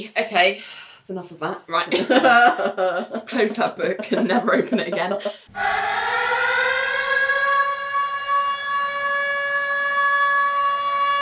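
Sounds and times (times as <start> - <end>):
speech: 0.0 - 6.6
laughter: 1.9 - 5.5
alarm siren: 5.2 - 11.2.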